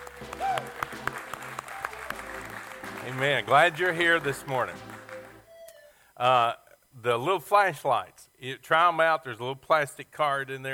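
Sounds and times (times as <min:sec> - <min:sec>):
audience applause: 0:00.0 - 0:05.5
speech: 0:03.1 - 0:04.9, 0:06.2 - 0:10.7.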